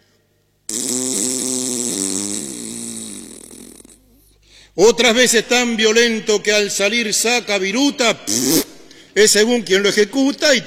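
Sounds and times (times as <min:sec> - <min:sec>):
fart: 0:00.7 - 0:04.3, 0:08.3 - 0:08.7
speech: 0:04.8 - 0:08.6, 0:09.2 - 0:10.6.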